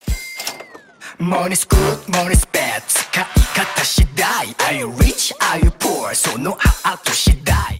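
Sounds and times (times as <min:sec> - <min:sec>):
rap music: 0:01.1 - 0:07.7.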